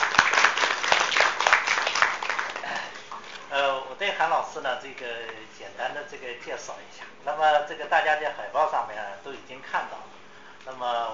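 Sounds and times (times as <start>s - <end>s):
audience clapping: 0.0s - 3.4s
speech: 4.0s - 11.1s.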